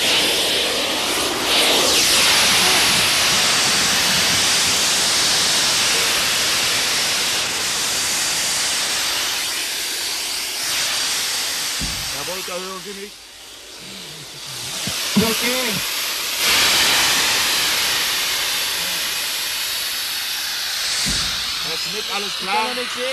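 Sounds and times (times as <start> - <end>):
hiss of escaping air: 0.0 - 23.1
speech: 12.9 - 13.2, 22.2 - 23.1.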